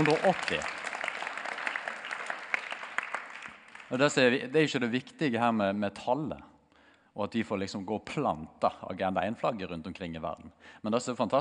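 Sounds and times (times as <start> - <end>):
speech: 0.0 - 0.8, 3.9 - 6.5, 7.2 - 11.3
audience applause: 0.0 - 4.1.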